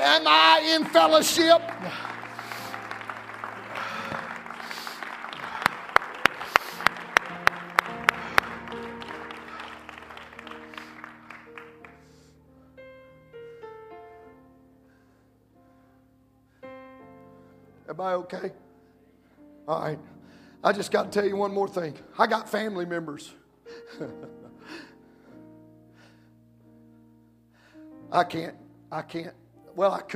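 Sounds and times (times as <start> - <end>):
audience clapping and cheering: 0.0 - 12.1
organ or keyboard music: 0.0 - 30.0
speech: 0.1 - 2.1, 18.0 - 18.6, 19.7 - 24.9, 28.1 - 30.1.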